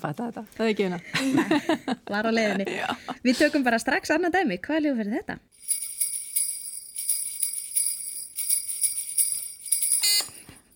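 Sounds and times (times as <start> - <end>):
speech: 0.0 - 5.8
laughter: 1.0 - 3.6
reindeer bells jingling: 5.5 - 10.7.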